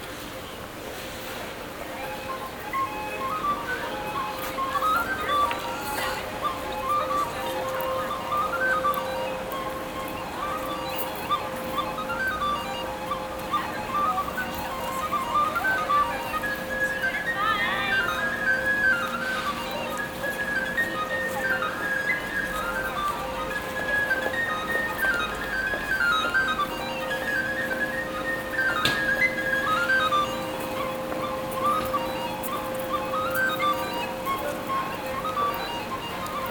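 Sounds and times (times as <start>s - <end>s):
tin whistle played by a busker in Belfast: 1.8s - 36.5s.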